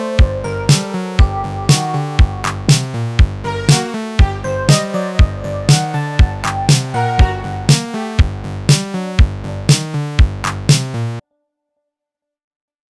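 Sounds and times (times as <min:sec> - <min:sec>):
synthwave music: 0:00.0 - 0:11.2.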